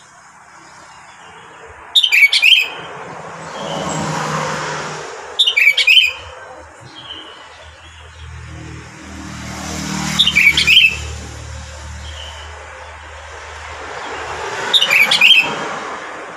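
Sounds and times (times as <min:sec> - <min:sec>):
sooty-headed bulbul whistled song: 0:02.0 - 0:02.8, 0:05.4 - 0:06.3, 0:10.1 - 0:11.2, 0:14.7 - 0:15.5.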